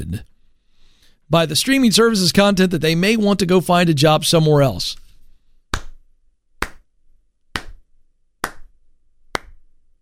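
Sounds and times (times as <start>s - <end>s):
speech: 0.0s - 0.3s, 1.3s - 5.0s
slow clap: 5.7s - 6.0s, 6.6s - 6.9s, 7.6s - 7.8s, 8.4s - 8.7s, 9.4s - 9.6s.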